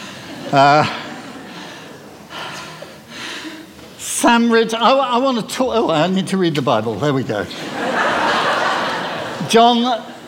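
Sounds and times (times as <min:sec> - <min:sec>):
laughter: 0:00.0 - 0:02.9, 0:07.5 - 0:10.2
heavy breathing after running and jumping: 0:00.0 - 0:04.0
speech: 0:00.5 - 0:01.0, 0:04.2 - 0:07.9, 0:09.5 - 0:10.2.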